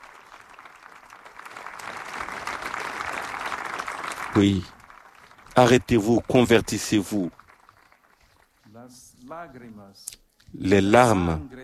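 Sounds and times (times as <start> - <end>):
crowd applauding the pope: 0.0 - 9.1
speech: 4.4 - 4.8, 5.6 - 7.4, 9.3 - 11.6.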